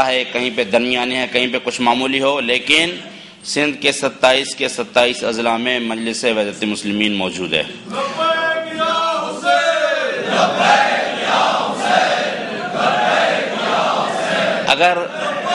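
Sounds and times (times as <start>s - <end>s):
speech: 0.0s - 9.0s, 14.7s - 15.2s
crowd chanting a religious slogan at a Majlis Wahdat-e-Muslimeen rally in Sindh: 8.0s - 15.5s.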